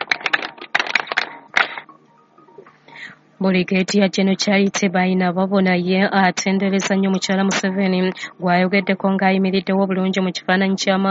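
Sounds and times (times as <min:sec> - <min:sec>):
audience clapping: 0:00.0 - 0:01.9
speech: 0:03.0 - 0:11.1.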